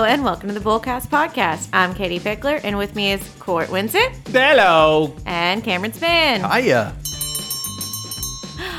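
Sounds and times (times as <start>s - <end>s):
speech: 0.1s - 7.0s
opening bell: 7.0s - 8.6s.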